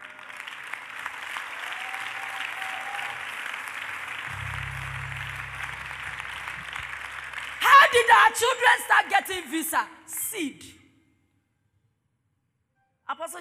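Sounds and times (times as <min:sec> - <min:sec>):
audience clapping: 0:00.0 - 0:09.0
low sustained droning tone: 0:04.3 - 0:07.6
speech: 0:07.9 - 0:10.8.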